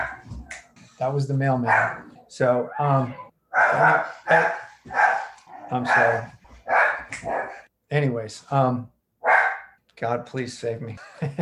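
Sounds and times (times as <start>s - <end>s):
dog barking at another dog outside: 0.0s - 0.5s, 1.6s - 2.1s, 3.5s - 7.7s, 9.2s - 9.8s
speech: 1.0s - 5.0s, 5.7s - 6.4s, 7.2s - 8.9s, 10.0s - 11.3s.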